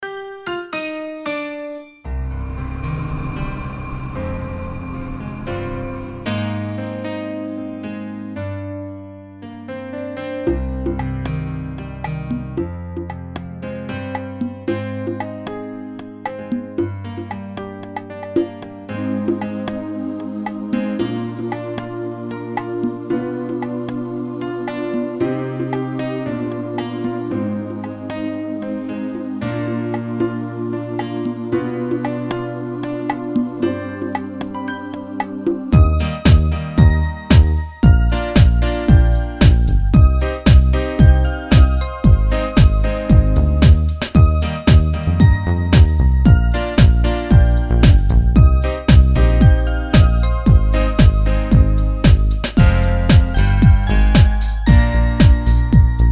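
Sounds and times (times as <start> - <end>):
backing track in B flat: 19.0 - 56.1.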